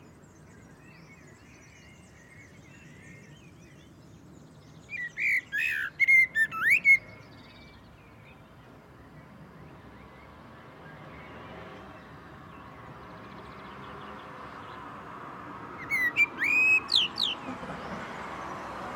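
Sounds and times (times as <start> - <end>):
Common blackbird Turdus merula whistling and twittering: 4.9 - 7.8, 15.8 - 17.4.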